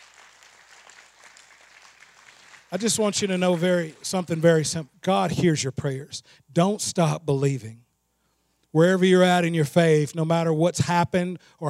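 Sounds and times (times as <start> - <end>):
audience applauding: 0.0 - 4.6
speech: 2.7 - 7.8, 8.7 - 11.6.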